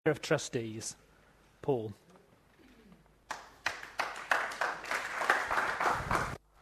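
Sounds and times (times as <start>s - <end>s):
speech: 0.0s - 1.0s, 1.6s - 2.0s
audience applause: 3.3s - 6.4s.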